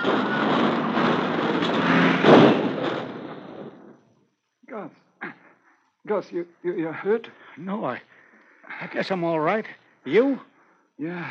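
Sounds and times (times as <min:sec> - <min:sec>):
car skidding and overturning on snowy road: 0:00.0 - 0:04.0
speech: 0:06.1 - 0:08.1, 0:08.7 - 0:11.2.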